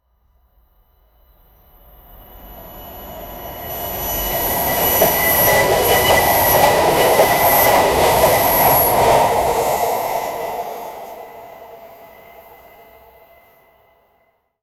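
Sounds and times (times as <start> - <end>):
train travelling: 1.6 - 13.9.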